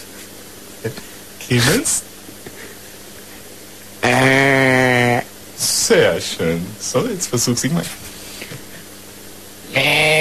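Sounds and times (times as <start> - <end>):
speech: 0.8 - 2.1, 6.2 - 8.1
person imitating a goat bleat: 4.0 - 5.2, 9.7 - 10.1.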